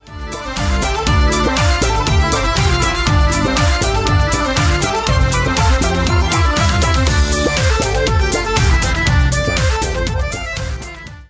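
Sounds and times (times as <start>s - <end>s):
celtic trance music: 0.0s - 11.2s.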